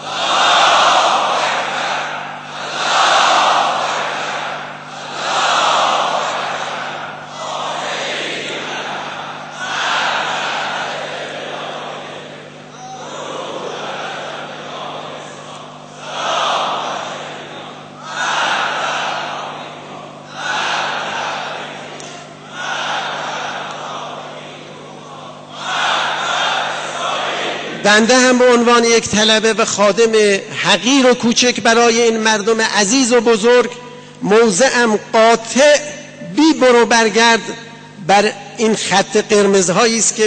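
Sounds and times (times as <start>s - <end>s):
large crowd chanting takbir in unison: 0.0s - 28.1s
speech: 27.9s - 35.9s, 36.6s - 40.2s.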